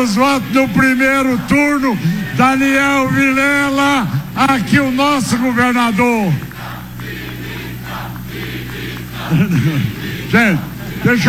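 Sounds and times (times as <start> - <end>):
speech: 0.0 - 6.5, 9.3 - 11.2
constant low hum: 0.0 - 11.2
crowd chanting in unison: 0.0 - 11.2
laughter: 0.0 - 11.2.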